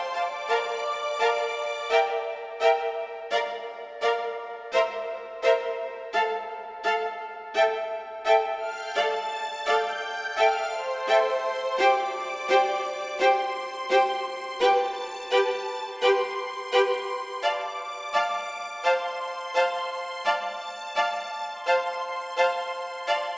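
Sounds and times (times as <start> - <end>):
strings with hall reverb from a digital reverb unit: 0.0 - 23.3.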